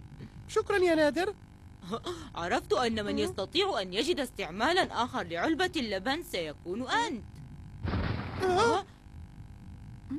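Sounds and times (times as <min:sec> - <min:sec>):
speech: 0:00.2 - 0:07.3, 0:08.4 - 0:08.9
loud crash of object falling from space on the moon: 0:07.8 - 0:08.6.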